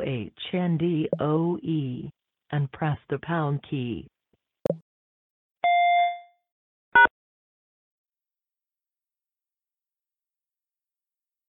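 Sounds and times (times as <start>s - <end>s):
speech: 0.1s - 4.8s
voicemail prompt beep: 5.6s - 6.4s.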